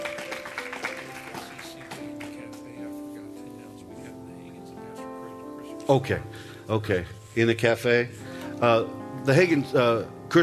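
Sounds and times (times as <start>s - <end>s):
audience clapping hands: 0.0s - 2.9s
speech: 5.9s - 10.4s.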